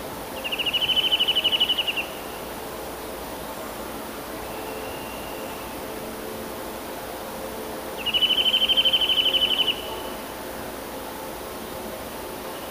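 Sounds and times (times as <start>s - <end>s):
Eurasian nuthatch giving fast even trills of rapid piping notes: 0.4s - 2.2s, 8.0s - 10.1s.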